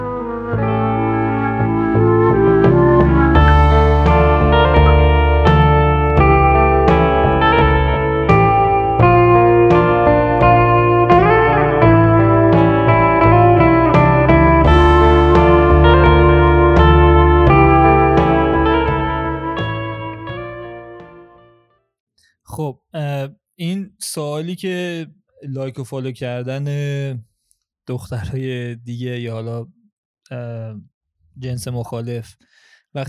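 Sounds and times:
podcast instrumental intro music: 0:00.0 - 0:21.6
speech: 0:24.1 - 0:27.3, 0:27.9 - 0:33.0.

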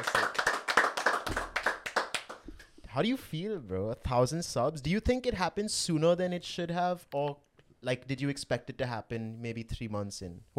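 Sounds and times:
people in the room clapping to celebrate a subscriber milestone: 0:00.0 - 0:02.7
speech: 0:03.0 - 0:10.5.

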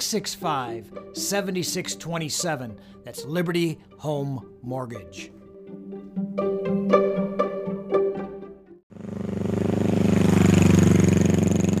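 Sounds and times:
speech: 0:00.0 - 0:05.4, 0:06.4 - 0:06.6
plucked musical tones: 0:00.0 - 0:08.8
new Honda motorcycle engine starting and running: 0:08.9 - 0:11.7.

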